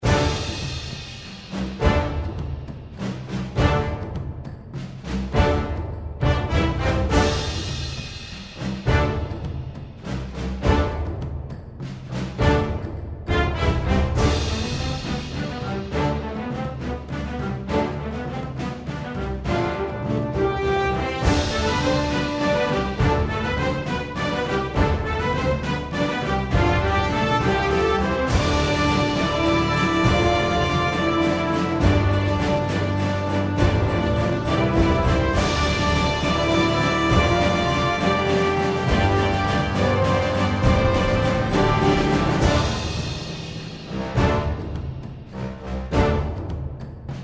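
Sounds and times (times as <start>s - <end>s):
music that sounds like pirates are about to appear: 0.0s - 47.2s.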